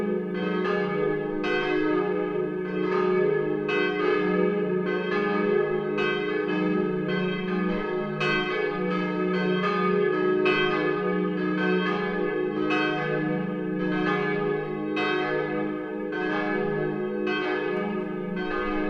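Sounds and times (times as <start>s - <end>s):
Petrikirche church bells: 0.0s - 18.8s.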